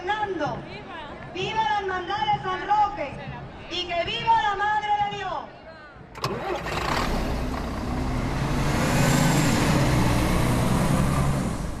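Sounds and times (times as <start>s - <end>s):
speech: 0.3s - 5.6s
crowded shuttle bus engine and road rumble: 6.1s - 11.7s.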